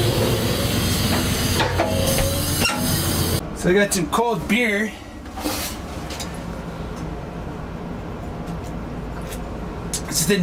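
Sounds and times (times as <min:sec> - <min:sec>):
freight train locomotive engine rumbling as it moves off: 0:00.0 - 0:09.9
metallic squeals: 0:00.1 - 0:03.4
speech: 0:03.6 - 0:05.6.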